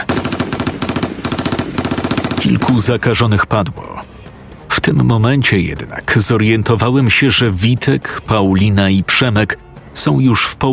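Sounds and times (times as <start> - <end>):
automatic gunfire: 0.0 - 3.0
speech: 2.5 - 3.9, 4.8 - 10.7.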